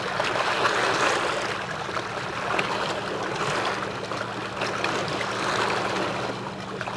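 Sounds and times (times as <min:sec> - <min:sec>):
water loop: 0:00.0 - 0:06.9.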